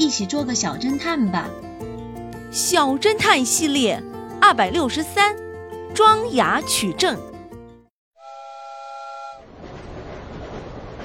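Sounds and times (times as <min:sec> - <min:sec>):
speech: 0:00.1 - 0:01.8, 0:02.5 - 0:05.4, 0:06.0 - 0:07.3
train whistle: 0:08.2 - 0:09.6
train running: 0:08.3 - 0:11.0.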